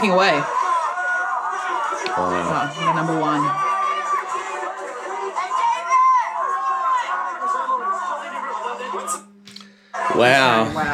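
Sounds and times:
speech: 0.0s - 0.6s, 2.0s - 3.7s, 10.1s - 10.9s
crowd chatter and shouting at Planet Hollywood: 0.0s - 10.9s.

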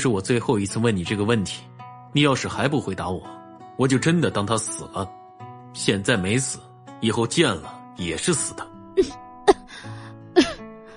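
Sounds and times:
speech: 0.0s - 5.2s, 5.8s - 9.2s
woman coughing while holding her chest, choking back laughter: 9.0s - 9.7s, 10.4s - 10.6s.

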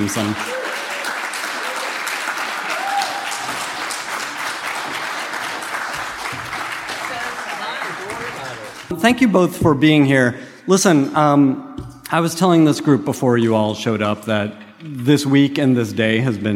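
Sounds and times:
speech: 0.0s - 0.6s, 9.0s - 16.5s
audience applause: 0.0s - 8.9s.

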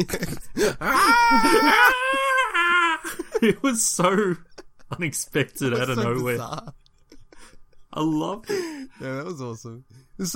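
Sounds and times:
speech: 0.0s - 1.9s, 3.4s - 6.8s, 8.0s - 10.3s
voice imitating a pterodactyl scream: 0.8s - 3.0s.

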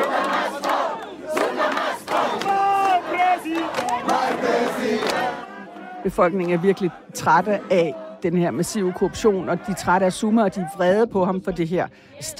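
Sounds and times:
large protest crowd chanting in unison: 0.0s - 12.3s
speech: 6.0s - 12.3s.

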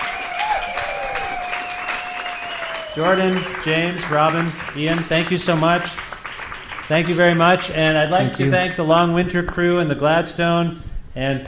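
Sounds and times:
audience applause: 0.0s - 8.6s
speech: 3.0s - 6.1s, 6.9s - 11.4s.

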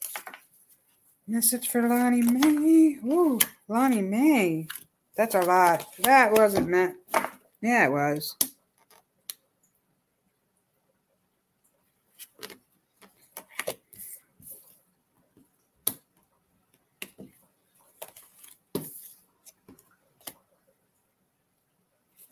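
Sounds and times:
cards being handled during a game: 0.0s - 0.5s, 1.8s - 7.4s, 12.2s - 14.6s
speech: 1.3s - 8.5s.

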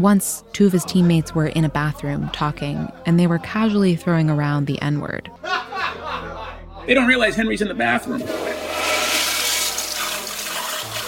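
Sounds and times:
speech: 0.0s - 6.0s, 6.9s - 8.5s
laughter: 5.4s - 7.1s
toilet flushing: 8.0s - 11.0s.

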